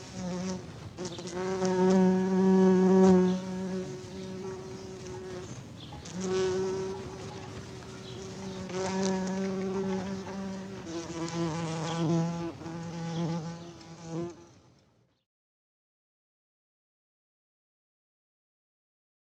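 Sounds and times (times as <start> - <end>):
bees buzzing: 0.0 - 14.5.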